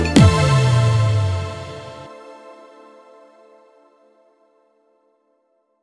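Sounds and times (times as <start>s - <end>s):
jingle: 0.2s - 2.1s.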